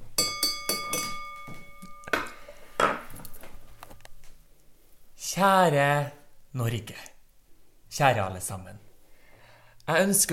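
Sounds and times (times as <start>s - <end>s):
utensil tapping a glass to call for attention: 0.2s - 3.0s
speech: 5.4s - 7.1s, 7.9s - 8.8s, 9.9s - 10.3s.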